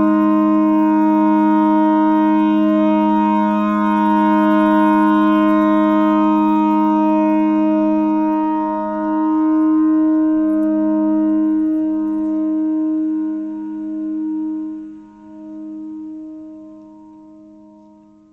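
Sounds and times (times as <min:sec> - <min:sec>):
clarinet notes: 0:00.0 - 0:13.9
noise: 0:00.0 - 0:18.3.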